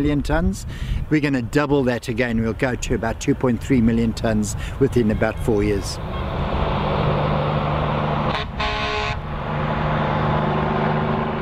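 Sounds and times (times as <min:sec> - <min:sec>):
speech: 0:00.0 - 0:06.3
fully loaded semi-trailer truck thundering past: 0:06.0 - 0:11.4.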